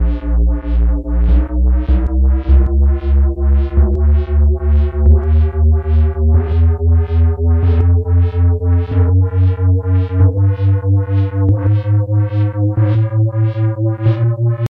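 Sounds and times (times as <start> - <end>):
chromatic scale on E: 0.0 - 14.6.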